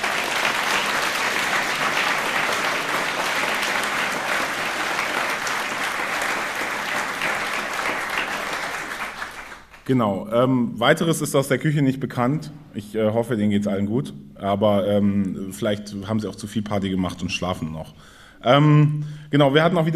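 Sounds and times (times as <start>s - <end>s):
big round of applause from a crowd: 0.0s - 9.9s
speech: 9.9s - 19.9s.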